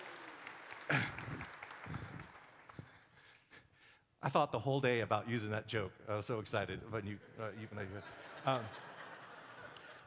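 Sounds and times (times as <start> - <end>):
audience applause: 0.0 - 3.2
speech: 4.2 - 8.9
laughter: 7.2 - 10.0.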